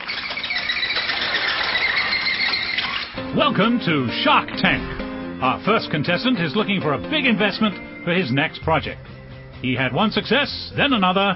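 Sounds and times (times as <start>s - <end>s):
balloon animal being twisted, rubber squeaking: 0.0s - 3.2s
speech: 3.4s - 11.3s.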